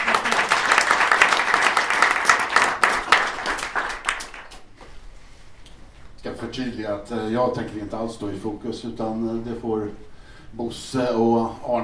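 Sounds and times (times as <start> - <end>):
crowd applauding: 0.0 - 4.7
speech: 6.6 - 11.8.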